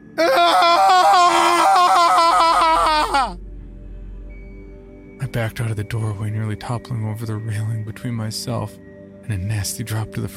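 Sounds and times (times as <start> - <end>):
speech: 0.2 - 0.4, 5.4 - 10.3
demented agonized scream: 0.2 - 3.4.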